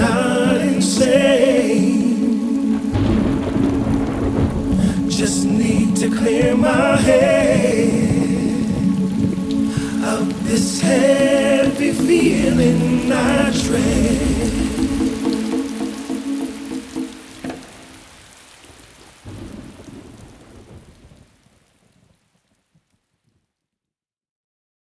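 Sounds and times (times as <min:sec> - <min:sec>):
soulful pop music: 0:00.0 - 0:17.7.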